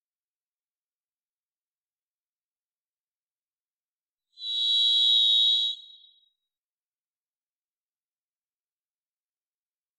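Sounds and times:
varied thrush buzzy whistle: 0:04.4 - 0:06.4.

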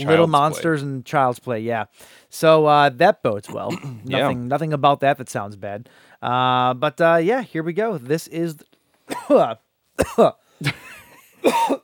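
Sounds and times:
speech: 0:00.0 - 0:11.8
person coughing after swallowing a bug: 0:00.1 - 0:00.6, 0:03.5 - 0:04.4, 0:09.1 - 0:11.8.

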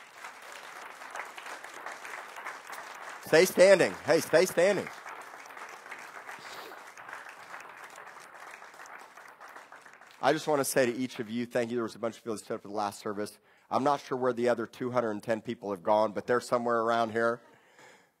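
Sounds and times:
applause from a large audience: 0:00.0 - 0:11.2
man calling out: 0:03.3 - 0:04.9
speech: 0:03.3 - 0:05.0, 0:10.2 - 0:17.5.

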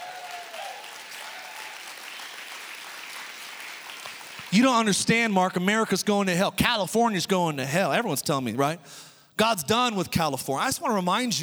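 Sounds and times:
whistle or cheer: 0:00.0 - 0:02.7
audience hand clapping: 0:00.0 - 0:05.1
speech: 0:04.5 - 0:11.4.

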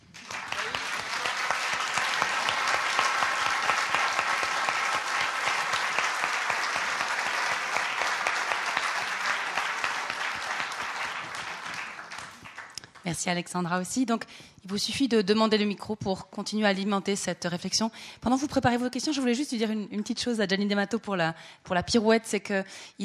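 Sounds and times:
audience applause: 0:00.0 - 0:13.0
speech: 0:13.1 - 0:23.0.

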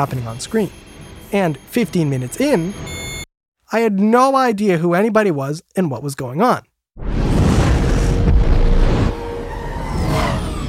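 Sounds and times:
speech: 0:00.0 - 0:03.0, 0:03.7 - 0:07.2
movie explosions rumbling: 0:07.0 - 0:10.6
whooshing debris: 0:07.0 - 0:10.6.

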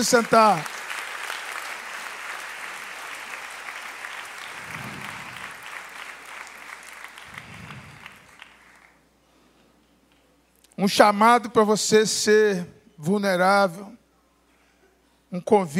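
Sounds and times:
speech: 0:00.0 - 0:00.8, 0:10.8 - 0:14.0, 0:15.3 - 0:15.7
audience applause: 0:00.0 - 0:09.0.

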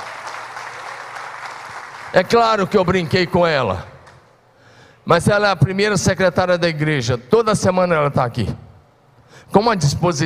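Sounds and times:
audience applause: 0:00.0 - 0:03.3
speech: 0:02.1 - 0:03.9, 0:05.0 - 0:08.6, 0:09.3 - 0:10.2.

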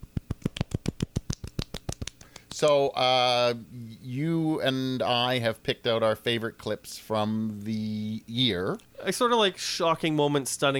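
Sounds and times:
soft golf clap: 0:00.4 - 0:02.5
speech: 0:02.6 - 0:10.7.

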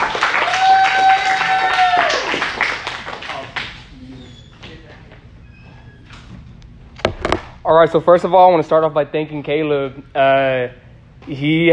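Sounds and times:
audience clapping: 0:00.0 - 0:03.8
speech: 0:07.7 - 0:11.7.

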